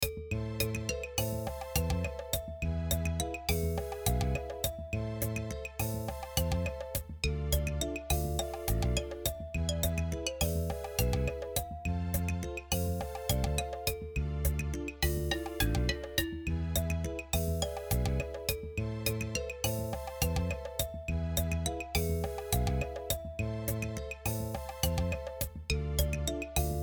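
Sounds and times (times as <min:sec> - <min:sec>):
panned glockenspiel: 0:00.0 - 0:26.8.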